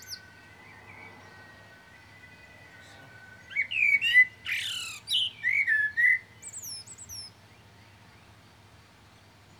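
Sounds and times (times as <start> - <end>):
common blackbird singing, Turdus merula: 0.0 - 7.3.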